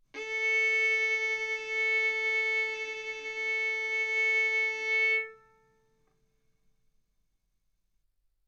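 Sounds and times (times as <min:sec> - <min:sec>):
violin bowed arco notes: 0:00.2 - 0:05.8.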